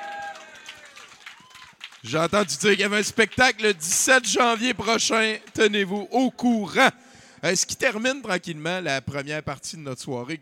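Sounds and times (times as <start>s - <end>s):
audience applause: 0.0s - 3.9s
speech: 2.0s - 10.4s.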